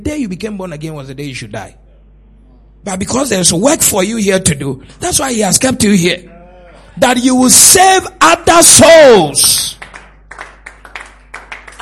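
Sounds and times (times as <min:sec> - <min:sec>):
speech: 0:00.0 - 0:01.8, 0:02.8 - 0:06.3, 0:07.0 - 0:09.8
audience clapping: 0:09.5 - 0:11.8.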